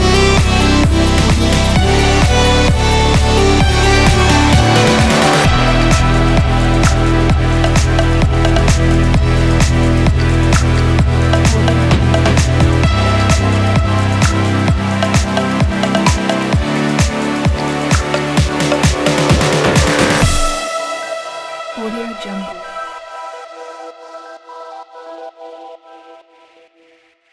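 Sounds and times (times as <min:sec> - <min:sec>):
active pumping energetic dance EDM music: 0:00.0 - 0:20.9.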